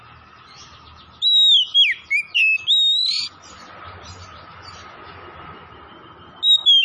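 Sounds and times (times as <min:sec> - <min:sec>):
oriental magpie-robin whistling: 0:01.2 - 0:03.4, 0:06.0 - 0:06.8.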